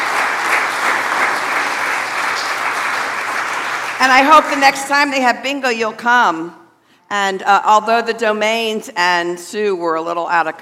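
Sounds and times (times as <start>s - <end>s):
round of applause: 0.0s - 4.9s
speech: 4.0s - 10.6s.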